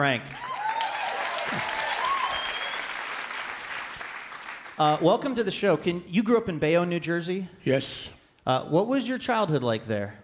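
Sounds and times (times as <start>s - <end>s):
speech: 0.0s - 0.4s, 1.5s - 1.8s, 4.8s - 10.2s
standing ovation applause from a large Portland audience: 0.3s - 5.0s.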